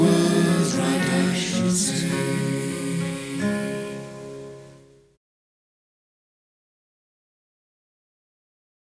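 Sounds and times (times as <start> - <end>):
song: 0.0 - 5.0.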